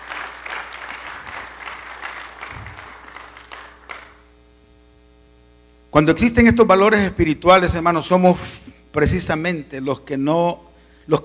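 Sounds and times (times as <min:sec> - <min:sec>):
audience applauding: 0:00.0 - 0:04.3
speech: 0:06.0 - 0:11.2.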